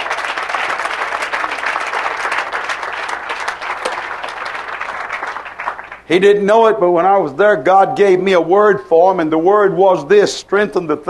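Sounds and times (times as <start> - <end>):
audience clapping hands: 0.0 - 6.4
speech: 6.1 - 11.0.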